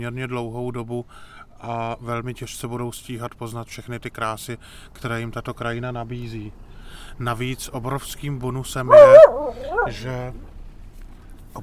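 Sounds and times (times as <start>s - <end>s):
speech: 0.0s - 10.5s
castle guard dog barking and yipping: 8.9s - 10.0s.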